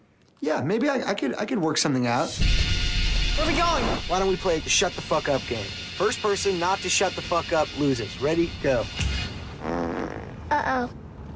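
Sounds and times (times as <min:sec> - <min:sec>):
speech: 0:00.4 - 0:02.8, 0:03.4 - 0:09.8, 0:10.7 - 0:11.0
fart: 0:09.6 - 0:10.5.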